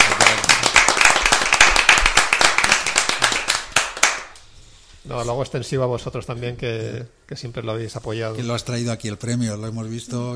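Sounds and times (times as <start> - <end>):
applause for an award winner: 0.0 - 4.5
speech: 5.1 - 10.3.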